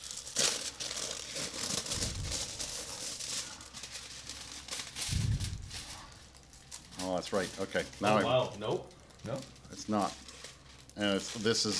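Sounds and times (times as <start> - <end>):
foil crinkling as it is unwrapped from a wine bottle: 0.0 - 11.7
speech: 7.1 - 10.2, 11.0 - 11.7.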